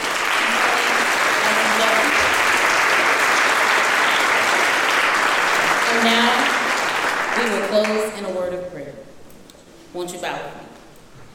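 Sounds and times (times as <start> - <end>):
crowd round of applause: 0.0 - 8.1
speech: 9.9 - 10.6.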